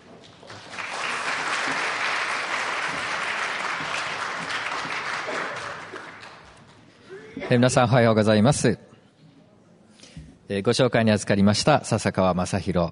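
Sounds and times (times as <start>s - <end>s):
audience applause welcoming speaker: 0.4s - 6.8s
speech: 7.5s - 8.9s, 10.5s - 12.9s.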